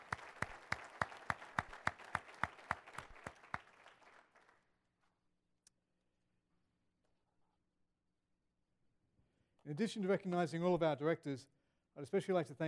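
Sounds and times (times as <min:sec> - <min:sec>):
audience applause: 0:00.0 - 0:04.6
speech: 0:09.7 - 0:12.6.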